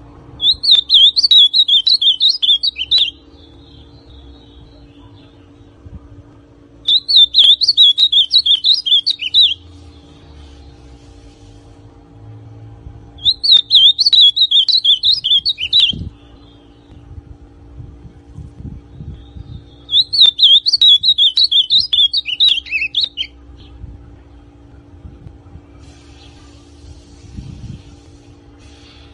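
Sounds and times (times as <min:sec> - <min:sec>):
ultramarine grosbeak song: 0:00.4 - 0:05.3, 0:06.8 - 0:10.7, 0:13.2 - 0:17.1, 0:18.9 - 0:23.7, 0:28.8 - 0:29.1.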